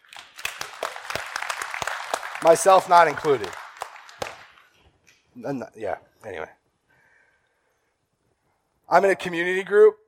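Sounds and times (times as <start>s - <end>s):
crowd applauding: 0.0s - 4.8s
speech: 2.4s - 3.6s, 5.4s - 6.6s, 8.9s - 10.0s.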